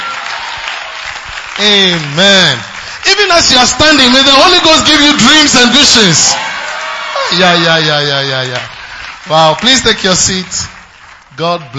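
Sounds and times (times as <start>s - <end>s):
audience clapping hard: 0.0s - 11.7s
speech: 1.6s - 6.5s, 7.3s - 10.7s, 11.4s - 11.7s.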